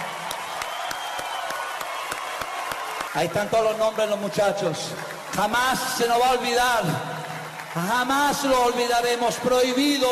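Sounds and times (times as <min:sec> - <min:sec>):
audience applause: 0:00.0 - 0:10.0
speech: 0:03.1 - 0:07.1, 0:07.7 - 0:10.0.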